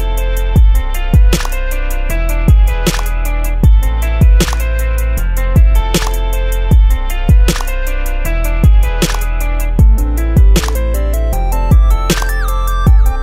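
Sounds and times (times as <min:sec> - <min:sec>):
RnB music: 0:00.0 - 0:13.2.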